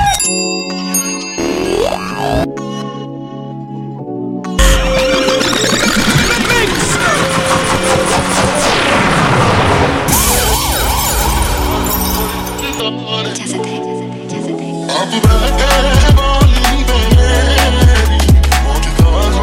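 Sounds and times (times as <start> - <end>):
music track playing: 0.0 - 19.4
DJ rewind effect with stuttering fragments and warbling pitch sweep: 4.6 - 12.8.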